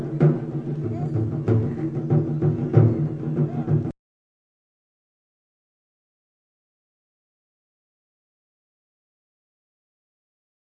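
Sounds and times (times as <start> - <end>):
taiko drums being played at festival: 0.0 - 3.9.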